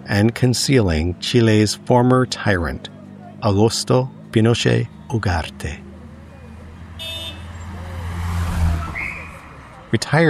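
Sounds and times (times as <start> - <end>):
convoy of limousines driving past: 0.0 - 10.2
road noise: 0.0 - 10.2
speech: 0.1 - 5.8, 9.9 - 10.2
horn-like notes: 7.0 - 7.7.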